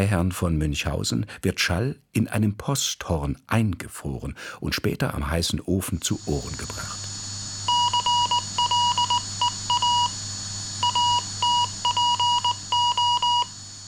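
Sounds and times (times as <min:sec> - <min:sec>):
speech: 0:00.0 - 0:07.0
telegraph Morse code beeps: 0:07.7 - 0:10.2, 0:10.8 - 0:13.5.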